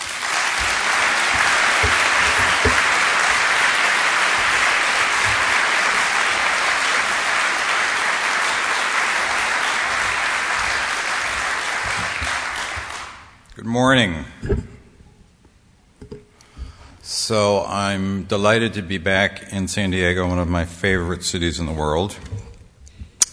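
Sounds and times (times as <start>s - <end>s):
audience in San Diego applauding to welcome the Archivist of the United States: 0.0s - 13.4s
speech: 13.8s - 14.6s, 17.3s - 22.4s.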